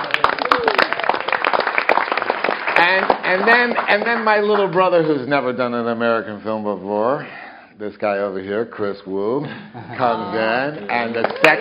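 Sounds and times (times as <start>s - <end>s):
round of applause: 0.0s - 4.8s, 10.8s - 11.6s
speech: 2.9s - 11.6s.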